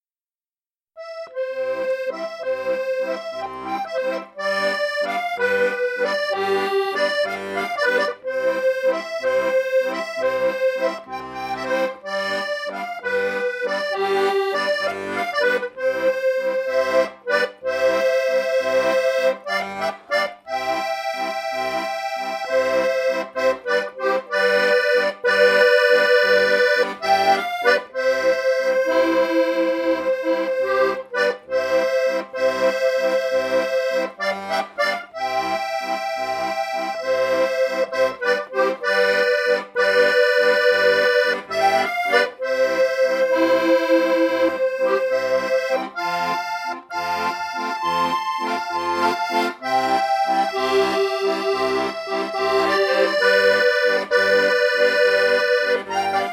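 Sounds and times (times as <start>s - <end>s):
waltz overture: 1.0s - 56.3s.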